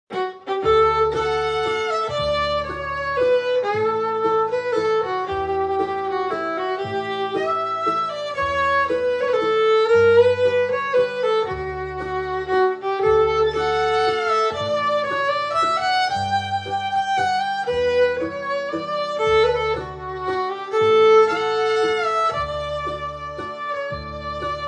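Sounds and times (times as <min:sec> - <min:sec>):
Texas fiddle playing a waltz: 0:00.1 - 0:24.6.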